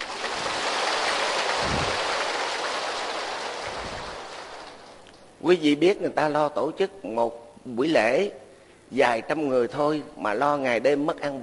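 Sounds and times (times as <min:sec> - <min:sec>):
crowd applauding: 0:00.0 - 0:05.0
speech: 0:05.4 - 0:11.4.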